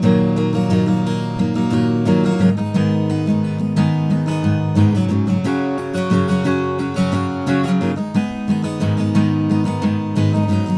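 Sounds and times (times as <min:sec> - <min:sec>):
guitar loop: 0:00.0 - 0:10.7.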